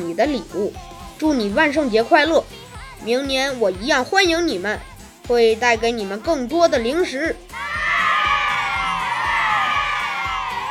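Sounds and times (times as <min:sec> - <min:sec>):
speech: 0:00.2 - 0:07.5
girls cheering: 0:07.5 - 0:10.6.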